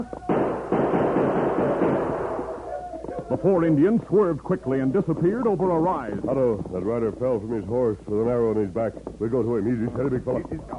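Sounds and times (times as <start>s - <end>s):
speech: 0.0s - 0.2s, 3.4s - 10.7s
gunshots: 0.0s - 2.8s.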